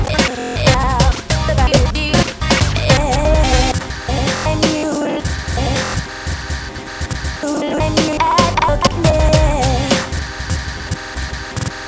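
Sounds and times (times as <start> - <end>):
pop recomposition: 0.0 - 6.0, 7.4 - 10.1.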